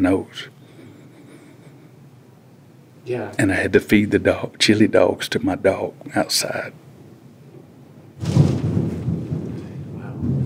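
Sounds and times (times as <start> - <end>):
speech: 0.0 - 0.6, 3.1 - 6.8
thunder strike: 8.2 - 10.4.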